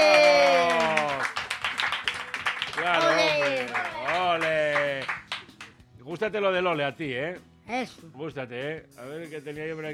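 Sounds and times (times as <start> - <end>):
audience applause with rhythmic claps: 0.0 - 5.5
speech: 6.2 - 9.9.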